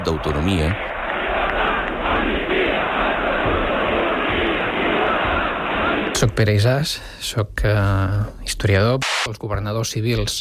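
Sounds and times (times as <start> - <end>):
speech: 0.0 - 0.9, 6.2 - 10.4
street crowd chanting protest slogan: 0.0 - 6.8.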